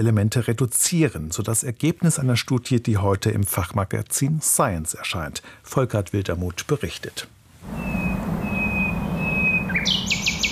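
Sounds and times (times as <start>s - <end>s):
speech: 0.0s - 8.0s
common nightingale singing in Berlin: 7.7s - 10.4s.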